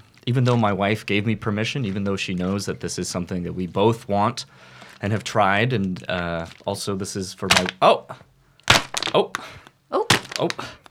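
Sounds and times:
speech: 0.3s - 8.3s, 9.1s - 10.8s
pens falling out of a pocket and clattering onto a hard surface: 8.8s - 9.4s.

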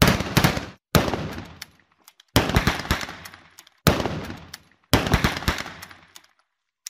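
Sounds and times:
rifle volley gunshots: 0.0s - 1.6s, 2.4s - 6.0s.

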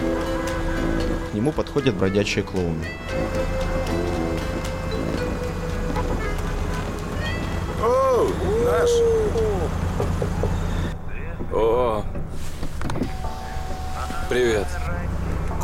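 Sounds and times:
idling traffic stuck in a traffic jam: 0.0s - 15.6s
speech: 1.4s - 3.6s, 8.2s - 9.8s, 11.6s - 12.2s, 14.3s - 15.0s.

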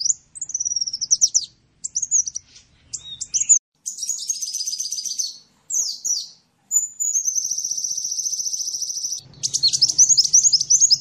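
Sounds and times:
bird singing whistles and trills: 0.0s - 10.9s.

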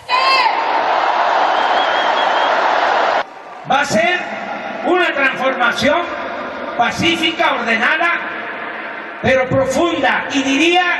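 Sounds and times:
large crowd cheering and applauding: 0.0s - 6.4s
high whistle in crowd: 1.4s - 2.7s
speech: 3.8s - 4.1s, 5.2s - 6.2s, 6.8s - 8.2s, 9.2s - 10.9s.

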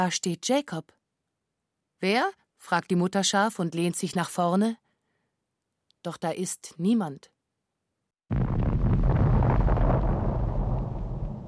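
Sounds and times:
speech: 0.0s - 1.0s, 2.0s - 4.8s, 6.0s - 7.3s, 8.3s - 8.6s
dull booming from the sea: 8.3s - 11.4s.

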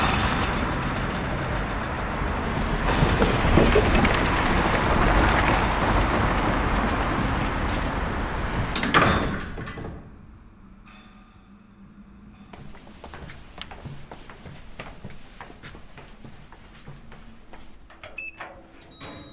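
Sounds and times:
elevator sliding door rumbling shut: 0.0s - 10.3s.

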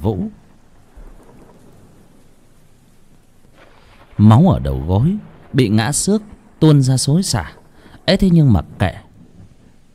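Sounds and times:
heavy rain: 0.0s - 9.9s
speech: 0.1s - 0.4s, 4.2s - 9.0s
thunder: 0.4s - 9.9s.

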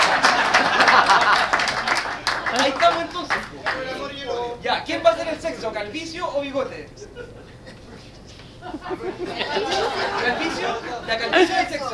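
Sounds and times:
laughter: 0.0s - 3.0s, 7.0s - 11.9s
crowd applauding: 0.0s - 4.2s
speech: 3.2s - 7.6s, 8.6s - 11.9s.

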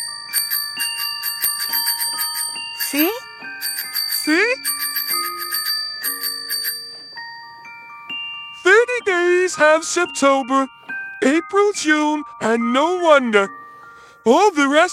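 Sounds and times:
little bell of a little red tricycle ringing: 0.0s - 11.8s
speech: 2.9s - 3.2s, 9.6s - 13.6s, 14.2s - 14.9s.

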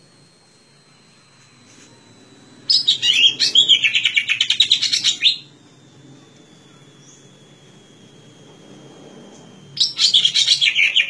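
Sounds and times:
leafbird singing chirping warbled notes: 2.7s - 5.6s, 6.6s - 8.0s, 9.1s - 11.0s.

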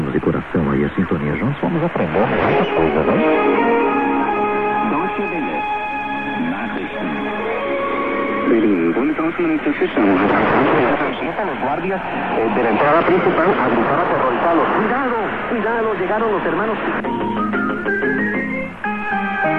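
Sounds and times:
shortwave radio reception noise: 0.0s - 7.7s, 8.4s - 17.0s
speech: 0.2s - 4.1s, 8.5s - 18.2s
warbling heterodyne whistles: 17.0s - 19.5s.

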